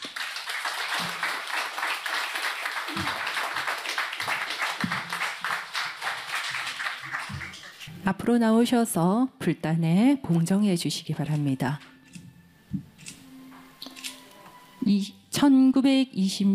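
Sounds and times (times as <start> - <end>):
audience applause: 0.0 - 7.9
speech: 8.0 - 11.9, 14.9 - 16.5.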